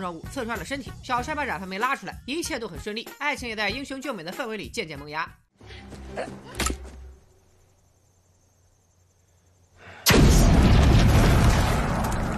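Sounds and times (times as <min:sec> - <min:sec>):
speech: 0:00.0 - 0:06.8
explosion: 0:10.0 - 0:12.3.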